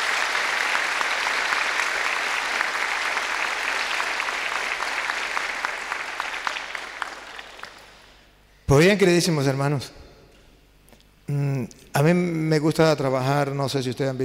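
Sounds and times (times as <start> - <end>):
audience applause welcoming guests at a debate gathering: 0.0 - 8.2
speech: 8.7 - 10.0, 12.1 - 14.2.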